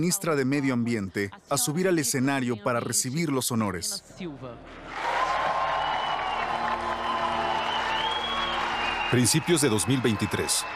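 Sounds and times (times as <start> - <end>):
speech: 0.0 - 5.1, 9.1 - 10.7
audience applause: 4.9 - 10.7.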